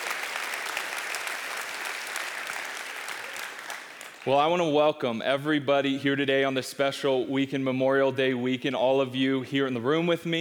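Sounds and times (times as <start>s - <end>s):
audience applause at a Memorial Day weekend service: 0.0s - 4.4s
speech: 4.2s - 10.4s.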